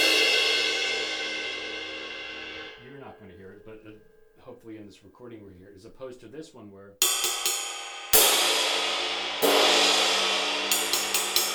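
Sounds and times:
bright washy cymbal crash: 0.0 - 3.2, 7.0 - 11.5
quick light cymbal hits: 0.0 - 4.5, 7.0 - 11.5
speech: 4.5 - 7.3.

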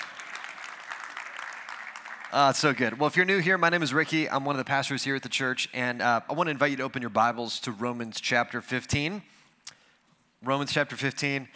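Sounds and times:
audience clapping: 0.0 - 4.1
speech: 2.3 - 9.4, 10.4 - 11.5.

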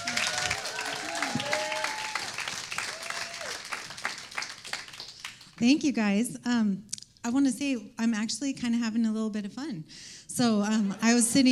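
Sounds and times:
church congregation applause welcoming a woman to the pulpit: 0.0 - 5.6
speech: 5.6 - 11.5.

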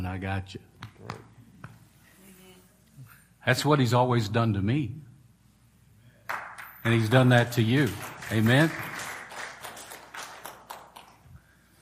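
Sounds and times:
speech: 0.1 - 1.4, 3.4 - 5.1, 6.8 - 9.0
weak clapping: 6.2 - 11.5.

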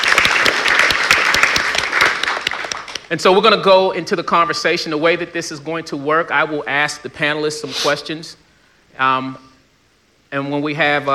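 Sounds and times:
crowd applauding: 0.0 - 3.1
speech: 3.1 - 8.4, 9.0 - 9.5, 10.3 - 11.1.

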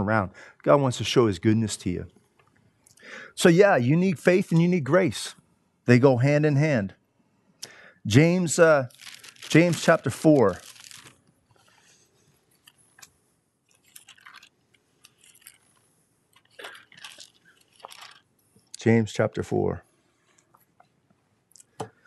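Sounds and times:
speech: 0.0 - 2.2, 3.1 - 7.0, 8.0 - 10.7, 18.8 - 19.8
pages of books rustling: 8.9 - 13.1, 13.7 - 18.3.

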